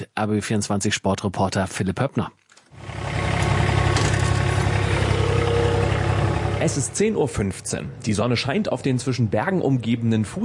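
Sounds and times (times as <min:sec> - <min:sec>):
speech: 0:00.0 - 0:03.0, 0:06.6 - 0:10.4
ride-on lawn mower engine: 0:02.8 - 0:07.7.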